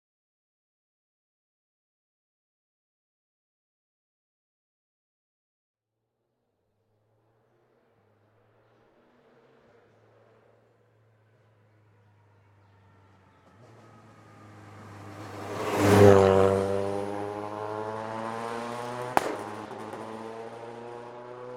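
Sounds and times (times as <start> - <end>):
Citroen Xsara WRC rally car passing fast: 7.6 - 21.5.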